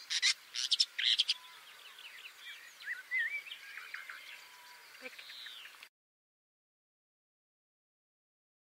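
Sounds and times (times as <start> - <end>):
woodchat shrike: 0.0 - 5.9.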